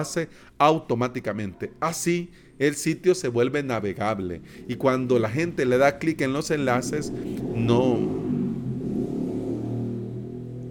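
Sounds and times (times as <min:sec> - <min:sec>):
speech: 0:00.0 - 0:08.3
noisy motorbike passing: 0:03.5 - 0:10.6.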